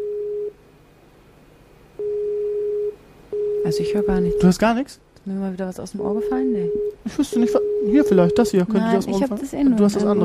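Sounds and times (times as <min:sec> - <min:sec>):
phone call ringing tone: 0:00.0 - 0:00.5, 0:02.0 - 0:04.5, 0:06.0 - 0:09.0
speech: 0:03.7 - 0:10.2.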